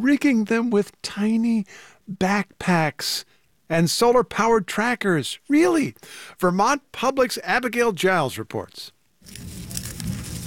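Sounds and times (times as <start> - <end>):
speech: 0.0 - 9.6
monarch butterfly legs rustling and scratching: 9.2 - 10.4.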